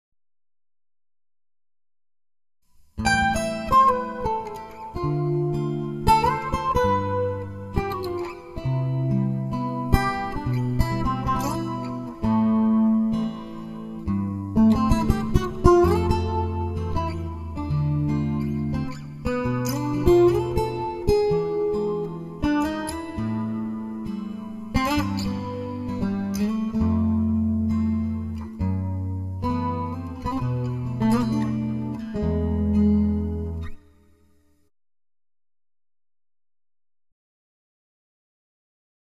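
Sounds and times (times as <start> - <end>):
ballad riff: 3.0 - 33.8.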